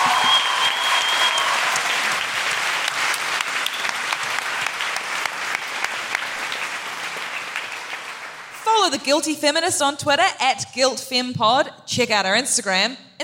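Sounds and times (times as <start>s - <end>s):
audience applause: 0.0s - 8.6s
speech: 8.9s - 13.2s.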